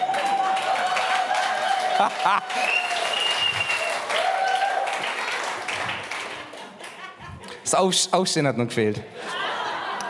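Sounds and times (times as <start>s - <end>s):
audience applause: 0.0s - 7.2s
laughter: 1.8s - 2.7s, 6.2s - 7.7s, 9.0s - 10.0s
speech: 2.0s - 2.8s, 7.7s - 9.4s.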